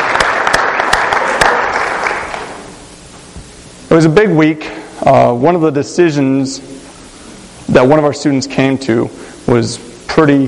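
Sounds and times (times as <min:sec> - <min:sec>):
audience applause: 0:00.0 - 0:02.7
speech: 0:03.9 - 0:06.8, 0:07.7 - 0:10.4.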